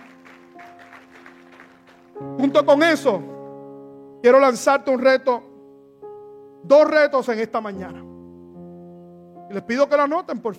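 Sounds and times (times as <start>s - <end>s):
audience applause: 0.0s - 2.2s
speech: 2.4s - 3.3s, 4.2s - 5.5s, 6.6s - 8.1s, 9.5s - 10.5s.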